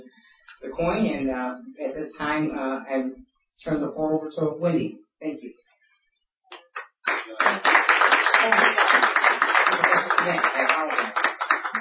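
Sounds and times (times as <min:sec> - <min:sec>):
speech: 0:00.6 - 0:05.6, 0:08.4 - 0:09.1, 0:10.2 - 0:11.1
audience applause: 0:07.0 - 0:11.8.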